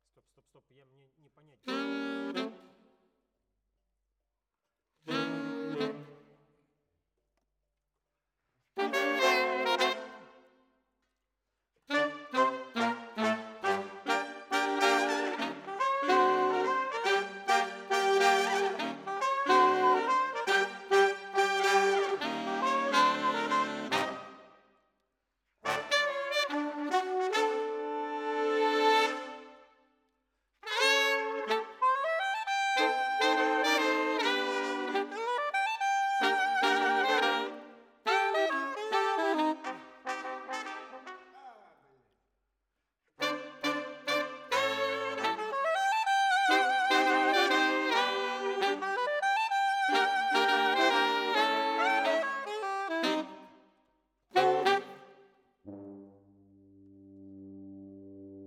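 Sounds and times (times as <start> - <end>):
saxophone: 1.6 - 2.9, 5.0 - 6.4, 8.8 - 10.5, 11.9 - 24.6, 25.6 - 29.8, 30.6 - 41.7, 43.2 - 56.2.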